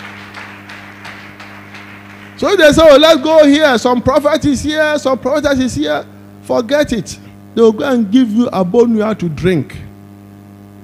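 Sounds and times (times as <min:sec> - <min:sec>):
audience clapping hands: 0:00.0 - 0:03.1
speech: 0:02.4 - 0:09.8.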